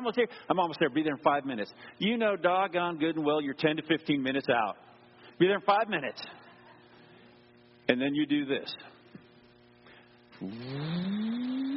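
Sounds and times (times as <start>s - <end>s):
speech: 0.0s - 6.4s, 7.9s - 8.9s, 10.4s - 11.4s
car accelerating with engine revving up: 10.4s - 11.7s.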